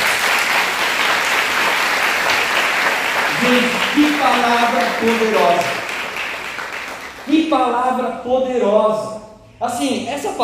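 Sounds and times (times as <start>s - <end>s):
audience applause: 0.0s - 7.5s
speech: 3.4s - 5.8s, 7.5s - 10.4s.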